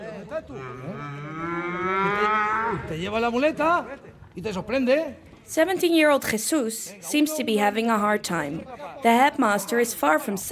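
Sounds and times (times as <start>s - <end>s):
speech: 0.4s - 10.5s
calf mooing at a bullfighting school practice class in Albacete: 0.6s - 2.9s.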